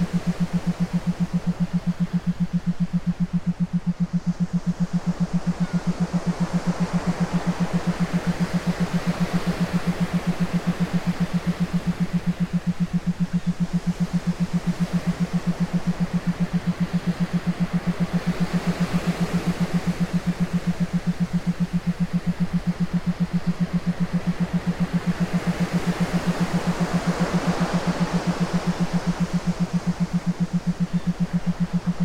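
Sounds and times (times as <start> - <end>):
theta binaural beats for meditation: 0.0 - 32.0.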